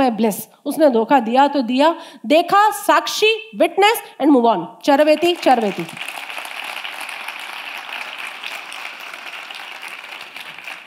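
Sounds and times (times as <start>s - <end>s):
speech: 0.0s - 6.2s
audience clapping: 5.0s - 10.8s.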